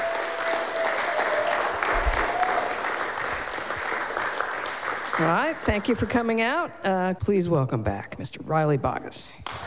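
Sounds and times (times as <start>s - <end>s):
concert audience applause for the sound engineer: 0.0s - 6.3s
speech: 5.2s - 9.6s.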